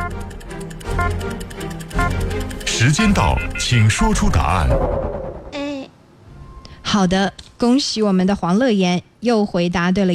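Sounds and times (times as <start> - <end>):
quiz countdown timer ticking: 0.0 - 4.8
speech: 2.8 - 5.2, 6.9 - 10.1.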